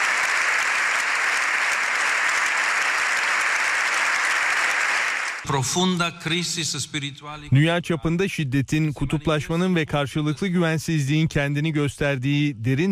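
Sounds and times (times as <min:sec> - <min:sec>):
parliament general assembly applause for Pope Leo XIV in Spain: 0:00.0 - 0:05.6
speech: 0:05.5 - 0:12.9.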